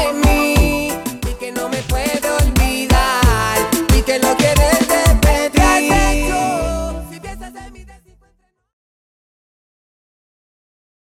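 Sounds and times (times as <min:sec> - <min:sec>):
break music at 90 BPM: 0:00.0 - 0:06.8.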